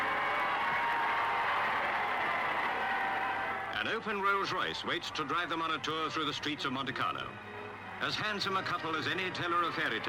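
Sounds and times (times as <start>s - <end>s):
crowd cheering: 0.0s - 6.3s, 8.4s - 10.0s
speech: 3.8s - 10.0s.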